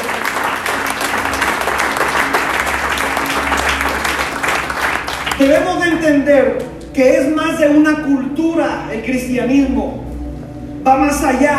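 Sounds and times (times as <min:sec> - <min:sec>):
audience clapping: 0:00.0 - 0:07.0
speech: 0:05.4 - 0:10.0, 0:10.8 - 0:11.5.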